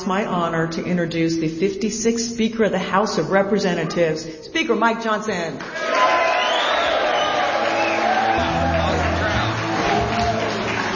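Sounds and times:
speech: 0:00.1 - 0:06.1
large crowd cheering and clapping: 0:05.6 - 0:10.9
scattered whoops: 0:05.8 - 0:10.5.

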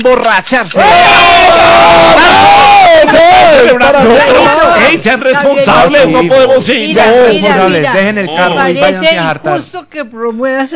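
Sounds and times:
speech: 0:00.0 - 0:10.7
shrill whoops and yells: 0:00.8 - 0:04.7
large crowd cheering wildly: 0:00.8 - 0:06.4.

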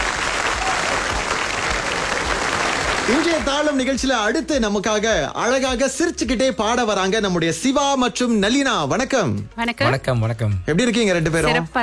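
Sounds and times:
audience applause for a singer on a Tamil music stage show: 0:00.0 - 0:03.8
speech: 0:03.1 - 0:11.8.

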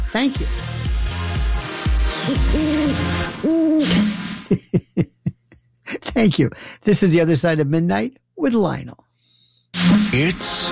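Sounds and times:
speech: 0:00.1 - 0:00.8, 0:02.3 - 0:05.1, 0:06.2 - 0:09.0, 0:09.7 - 0:10.6
horned owl hooting: 0:02.1 - 0:04.2
laughter: 0:04.4 - 0:06.0.

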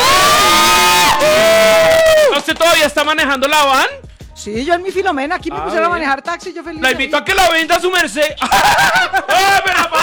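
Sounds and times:
audience cheering: 0:00.0 - 0:02.5
speech: 0:02.8 - 0:10.0
laughter: 0:08.4 - 0:10.0.

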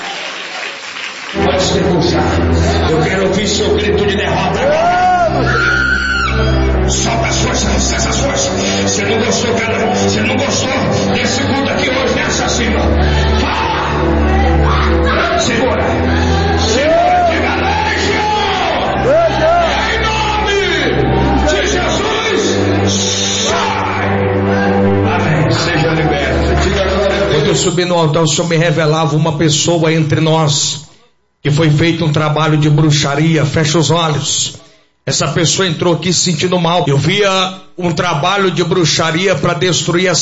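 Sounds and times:
large crowd clapping: 0:00.0 - 0:02.3, 0:25.3 - 0:27.7
speech: 0:01.6 - 0:04.8, 0:06.9 - 0:18.1, 0:25.5 - 0:30.8, 0:31.4 - 0:40.2
large crowd shouting and cheering: 0:04.3 - 0:06.7, 0:11.6 - 0:27.4.

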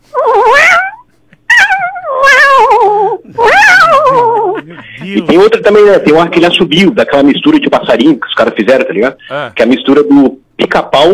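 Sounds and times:
person imitating cat meows: 0:00.2 - 0:05.3
laughter: 0:03.2 - 0:06.3
speech: 0:05.1 - 0:11.1.

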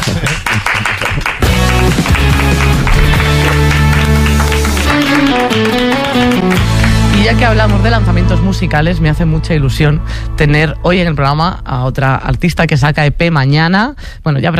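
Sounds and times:
audience applause: 0:00.0 - 0:07.4
speech: 0:07.3 - 0:14.5.

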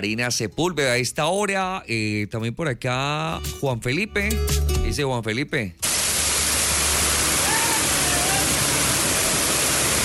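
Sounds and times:
speech: 0:00.0 - 0:06.0
heavy rain downpour in Centro Abastos: 0:05.8 - 0:10.0.

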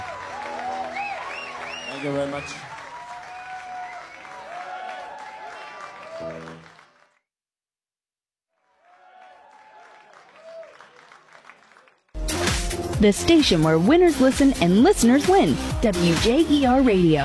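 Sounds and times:
people cheering: 0:00.0 - 0:07.1, 0:08.6 - 0:12.0
audience applause: 0:00.0 - 0:07.2, 0:08.6 - 0:12.2
speech: 0:02.0 - 0:02.7, 0:13.0 - 0:17.2.

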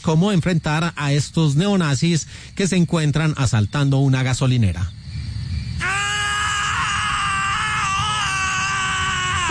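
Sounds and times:
speech: 0:00.0 - 0:05.0
two men screaming in a film: 0:05.8 - 0:09.4.

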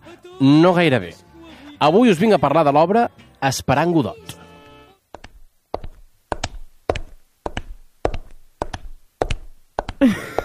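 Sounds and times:
speech: 0:00.2 - 0:04.4
actress's hard footsteps on a stage: 0:05.1 - 0:10.4.

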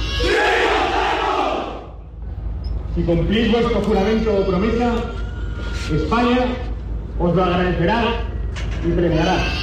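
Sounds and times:
large crowd shouting at oath ceremony: 0:00.2 - 0:02.0
speech: 0:03.0 - 0:05.3, 0:05.9 - 0:08.3, 0:08.9 - 0:09.6.

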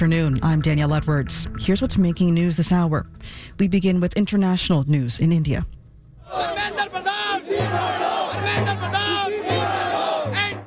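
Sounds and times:
speech: 0:00.0 - 0:09.4
street protest crowd of demonstrators shouting and chanting: 0:06.2 - 0:10.6.

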